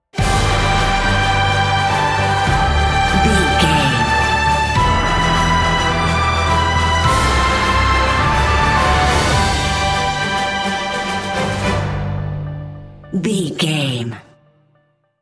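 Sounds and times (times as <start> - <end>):
cinematic adventure music: 0.1 - 14.6.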